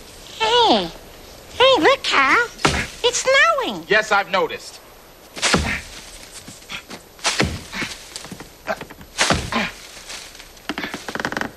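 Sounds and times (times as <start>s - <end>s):
speech: 0.7s - 1.0s, 1.8s - 4.8s
chopping: 2.6s - 3.0s, 5.4s - 6.0s, 7.2s - 9.8s.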